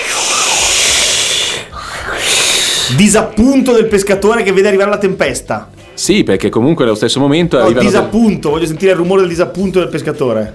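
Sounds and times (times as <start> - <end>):
voice imitating a rippling sea wave: 0.0 - 3.0
speech: 2.9 - 10.5.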